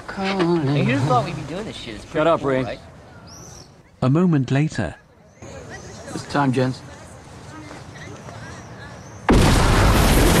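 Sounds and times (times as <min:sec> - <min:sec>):
speech: 0:00.2 - 0:02.9, 0:04.0 - 0:05.0, 0:06.3 - 0:06.9
film bomb exploding behind a wall with heavy roaring rumble: 0:09.3 - 0:10.3.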